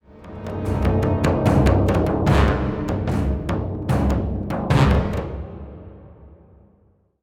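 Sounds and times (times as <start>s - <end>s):
musical stinger: 0.1s - 5.1s.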